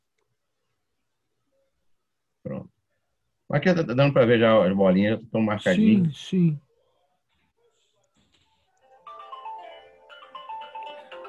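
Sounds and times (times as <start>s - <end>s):
speech: 3.5s - 6.6s
phone ringtone melody: 8.9s - 11.2s.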